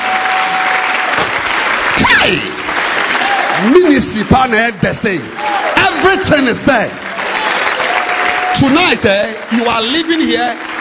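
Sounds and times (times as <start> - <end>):
audience clapping hands: 0.0 - 10.8
speech: 2.0 - 2.6, 3.6 - 7.1, 8.6 - 10.8.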